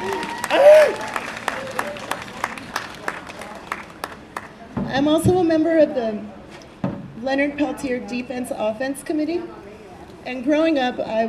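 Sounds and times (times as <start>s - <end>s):
voice or cheer: 0.0s - 1.2s
audience applause at a community gathering: 0.0s - 4.6s
speech: 4.9s - 6.4s, 7.2s - 9.6s, 10.2s - 11.2s.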